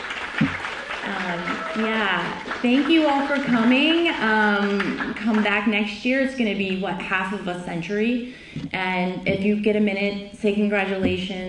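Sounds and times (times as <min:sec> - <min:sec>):
audience applause: 0:00.0 - 0:05.6
speech: 0:01.3 - 0:11.4.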